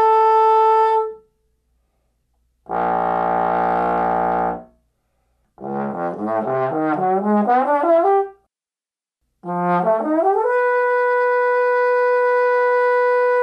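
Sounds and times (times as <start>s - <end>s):
trombone playing arioso: 0.0s - 1.2s, 2.7s - 4.7s, 5.6s - 8.4s, 9.4s - 13.4s.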